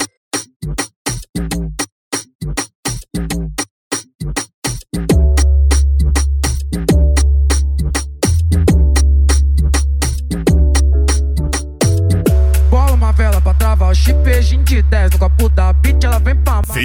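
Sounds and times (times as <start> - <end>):
mega funk bass: 0.6 - 16.7.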